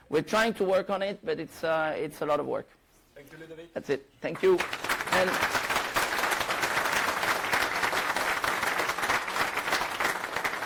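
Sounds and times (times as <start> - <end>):
speech: 0.1 - 5.7
audience applause at the end of a technical talk: 4.3 - 10.6.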